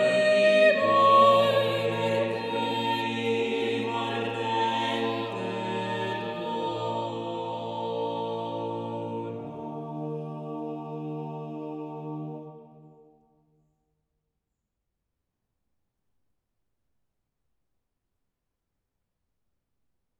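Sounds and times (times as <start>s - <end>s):
madrigal for five voices: 0.0s - 13.1s.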